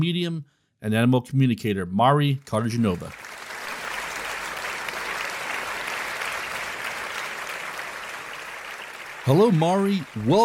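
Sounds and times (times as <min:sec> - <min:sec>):
speech: 0:00.0 - 0:03.2, 0:09.3 - 0:10.4
talk-show audience applauding to welcome a guest: 0:03.1 - 0:10.4.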